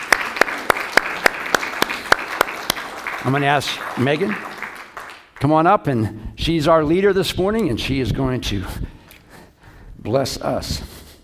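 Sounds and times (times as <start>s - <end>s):
audience clapping welcoming the women of New Life for Girls: 0.0s - 5.9s
speech: 3.2s - 4.5s, 5.4s - 8.9s, 10.0s - 10.9s.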